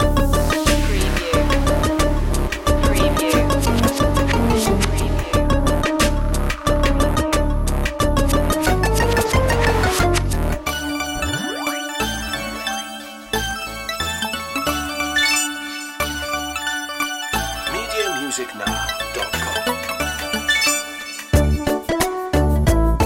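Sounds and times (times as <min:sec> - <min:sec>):
retro video game music loop: 0:00.0 - 0:22.9.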